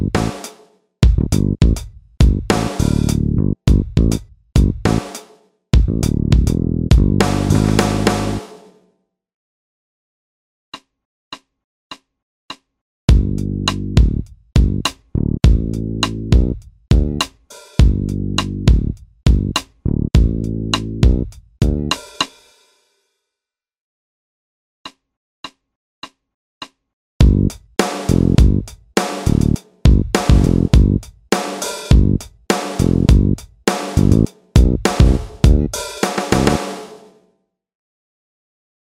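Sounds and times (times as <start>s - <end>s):
bass loop: 0.0s - 0.4s, 1.0s - 5.0s, 5.8s - 8.4s, 13.1s - 22.0s, 27.2s - 28.6s, 29.3s - 31.0s, 31.9s - 32.2s, 32.8s - 33.4s, 34.0s - 36.6s
drum loop: 0.0s - 8.7s, 13.1s - 22.3s, 27.2s - 37.1s.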